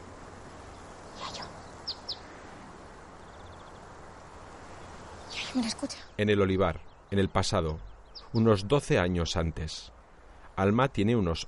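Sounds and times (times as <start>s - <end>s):
soft hiss: 0.0s - 11.4s
greenfinch singing: 0.6s - 2.4s, 4.7s - 8.7s
speech: 5.5s - 10.0s, 10.6s - 11.4s.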